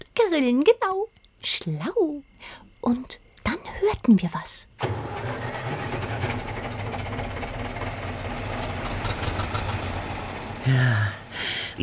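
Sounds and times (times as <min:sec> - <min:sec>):
speech: 0:00.2 - 0:05.3, 0:10.6 - 0:11.2
tractor engines running: 0:04.8 - 0:11.8.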